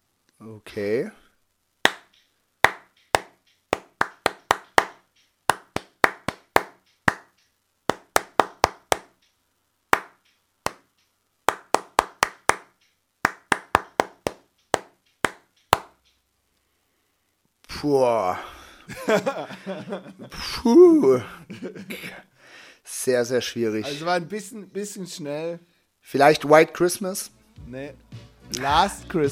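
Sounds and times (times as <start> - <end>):
speech: 0.4 - 1.2, 17.8 - 22.3, 23.0 - 29.3
hands clapping a song's rhythm: 1.8 - 9.2, 9.9 - 10.9, 11.5 - 16.0, 28.2 - 29.3
laughter: 18.9 - 20.5.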